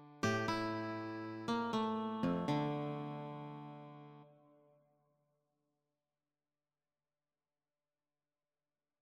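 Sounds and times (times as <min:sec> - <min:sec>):
lullaby music: 0:00.2 - 0:03.8.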